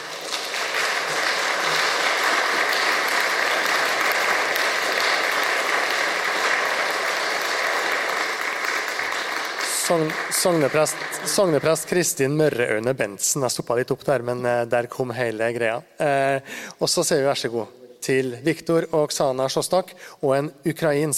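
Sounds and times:
audience applause: 0.0s - 12.6s
speech: 9.9s - 21.1s.

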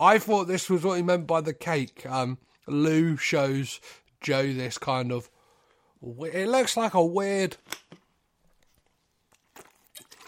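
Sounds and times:
speech: 0.0s - 5.4s, 6.0s - 7.9s
person sipping water: 8.6s - 10.2s.

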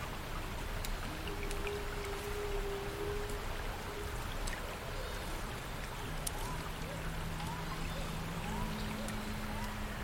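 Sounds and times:
flowing water: 0.0s - 10.0s
rustling leaves: 0.0s - 10.0s.

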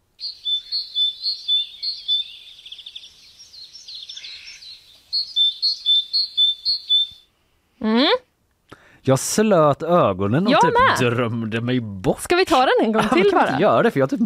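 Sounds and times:
great tit song: 0.2s - 7.3s
speech: 7.8s - 8.3s, 9.0s - 14.2s
laughter: 13.0s - 13.8s.

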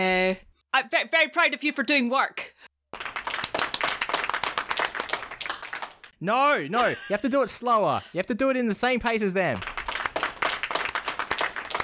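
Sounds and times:
speech: 0.0s - 2.5s, 6.2s - 9.8s
applause sound effect from button: 2.9s - 6.2s, 9.4s - 11.8s.

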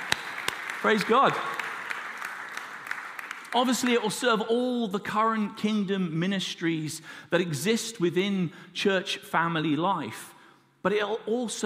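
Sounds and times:
crowd clapping: 0.0s - 4.3s
speech: 0.8s - 1.6s, 3.5s - 11.6s.

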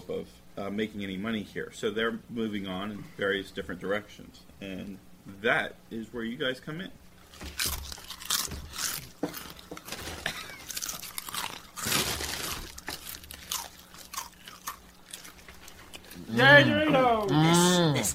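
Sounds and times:
speech: 0.1s - 7.8s, 16.4s - 18.1s
eating Doritos Collisions Blazing Buffalo Ranch chips: 7.4s - 16.3s.

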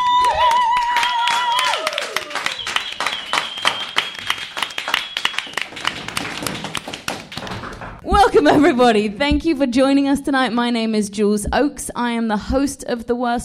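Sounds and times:
live audience applause at a recorded stage show: 0.0s - 8.0s
speech: 8.4s - 13.4s.

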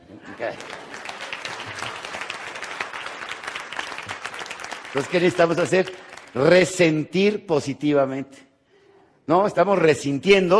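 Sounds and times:
speech: 0.2s - 0.9s, 4.9s - 8.5s, 9.3s - 10.5s
audience applause: 0.3s - 6.5s.

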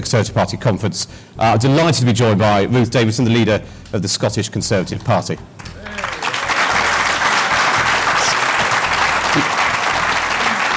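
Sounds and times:
speech: 0.0s - 5.7s
audience applause: 5.8s - 10.7s.

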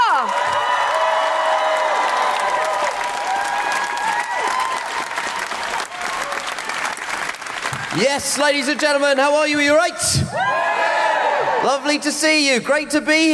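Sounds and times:
theatre audience applause: 0.0s - 9.2s
speech: 8.0s - 10.6s, 11.6s - 13.3s.

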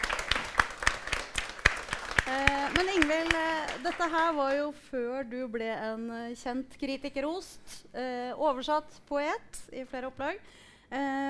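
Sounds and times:
small group clapping: 0.0s - 4.6s
speech: 2.3s - 11.2s.

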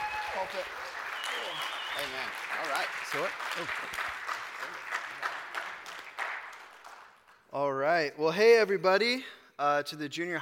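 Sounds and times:
audience clapping at a South Coast Christian gathering: 0.0s - 8.0s
speech: 0.4s - 4.8s, 7.5s - 10.4s.

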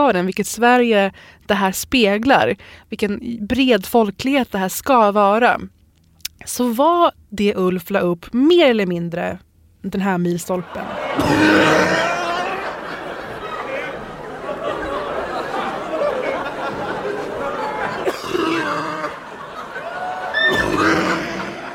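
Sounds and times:
speech: 0.0s - 5.8s, 6.4s - 12.1s
laughter: 10.6s - 21.7s
Robert Gustafsson's trademark cough: 11.2s - 12.5s, 18.0s - 19.2s.

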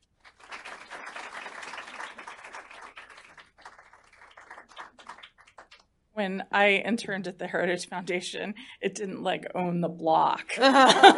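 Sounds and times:
audience applause welcoming speakers at a Heritage Foundation event: 0.0s - 5.8s
speech: 6.2s - 11.1s
laughter: 10.6s - 11.1s.

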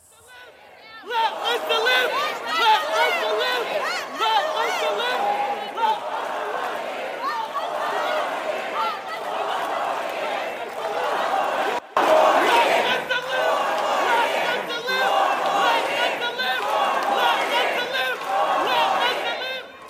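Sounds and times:
large crowd at a rally chanting and shouting: 0.0s - 19.8s.

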